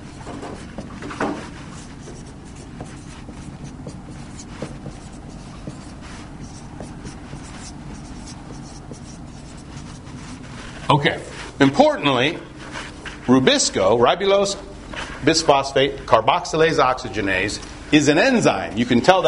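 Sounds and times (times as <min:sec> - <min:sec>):
handwriting scratching: 0:00.0 - 0:11.6
speech: 0:10.9 - 0:12.5, 0:13.3 - 0:19.2.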